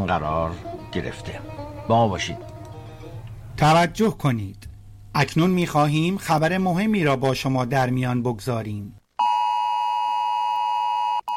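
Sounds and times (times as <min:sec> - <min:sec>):
speech: 0:00.1 - 0:02.5, 0:03.6 - 0:09.0
mobile phone emergency alert beep: 0:09.2 - 0:11.3.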